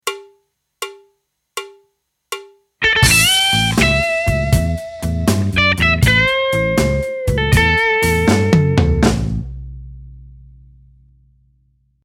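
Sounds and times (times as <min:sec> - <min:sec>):
blues music: 0:02.8 - 0:10.0.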